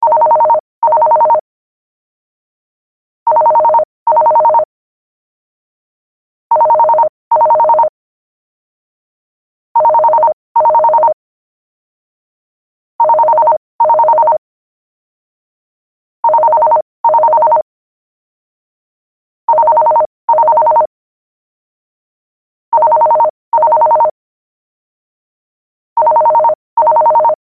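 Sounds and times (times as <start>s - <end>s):
landline phone ringing: 0.0s - 1.4s, 3.3s - 4.6s, 6.5s - 7.9s, 9.8s - 11.1s, 13.0s - 14.4s, 16.2s - 17.6s, 19.5s - 20.9s, 22.8s - 24.2s, 26.0s - 27.4s.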